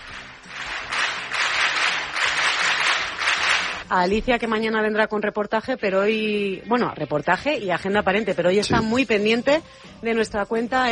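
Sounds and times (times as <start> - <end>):
applause: 0.0 - 3.9
speech: 3.9 - 10.9.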